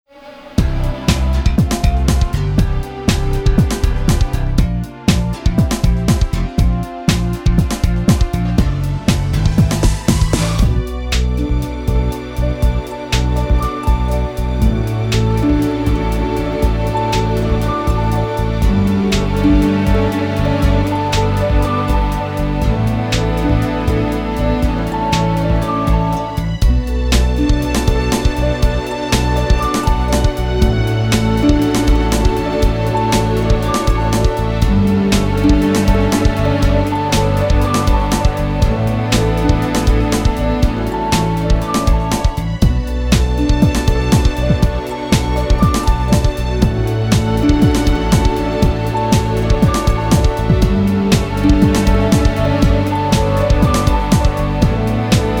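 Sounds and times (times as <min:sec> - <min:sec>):
long tune: 0:00.2 - 0:55.3.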